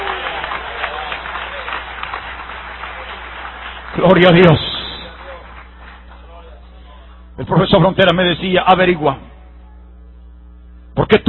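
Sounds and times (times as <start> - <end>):
congregation applause during a church service as praise to the Lord: 0.0 - 7.0
speech: 4.0 - 4.6, 7.5 - 9.3, 11.0 - 11.2.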